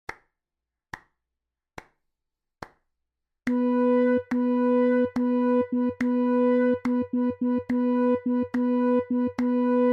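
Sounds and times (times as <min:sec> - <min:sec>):
rhythm practice: 0:03.5 - 0:09.9.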